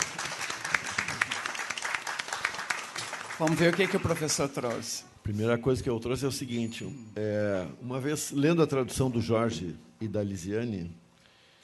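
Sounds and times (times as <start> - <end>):
audience applause: 0.0 - 5.0
speech: 3.4 - 11.0.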